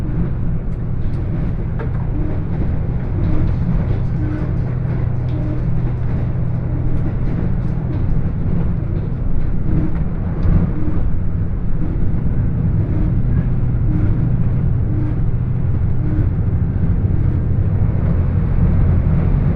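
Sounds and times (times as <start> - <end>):
Hida 14 limited express train on the Takayama Line: 0.0 - 19.5
light rattles and clicks: 0.1 - 19.2.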